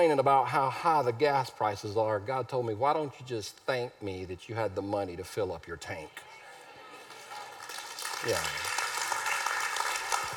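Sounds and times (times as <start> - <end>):
speech: 0.0 - 6.4, 8.2 - 8.7
audience clapping: 7.0 - 10.3.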